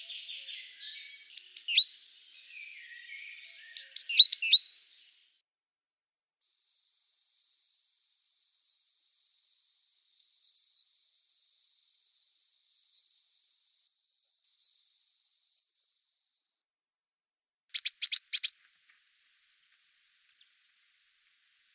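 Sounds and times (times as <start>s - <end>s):
great tit singing: 0.0s - 5.2s, 6.4s - 16.6s, 17.7s - 18.6s.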